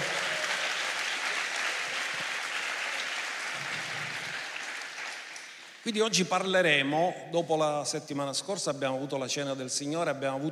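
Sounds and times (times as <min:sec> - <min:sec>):
crowd applauding: 0:00.0 - 0:05.8
speech: 0:05.8 - 0:10.5.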